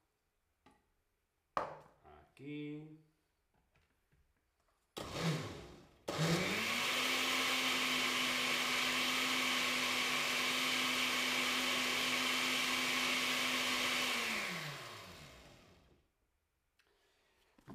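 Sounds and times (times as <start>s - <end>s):
speech: 2.4s - 3.1s
electric blender blending tomato and vegetables: 5.0s - 16.0s.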